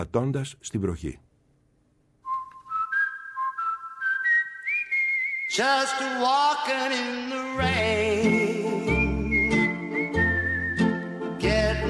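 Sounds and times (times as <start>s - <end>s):
speech: 0.0s - 1.3s, 5.6s - 9.0s
whistled intro of a pop song recording: 2.2s - 11.8s
light musical accompaniment: 7.6s - 11.8s.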